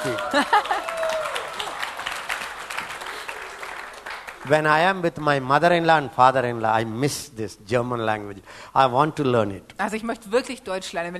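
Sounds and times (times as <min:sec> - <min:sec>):
speech: 0:00.0 - 0:01.0, 0:04.4 - 0:11.1
audience clapping hands: 0:00.0 - 0:05.4.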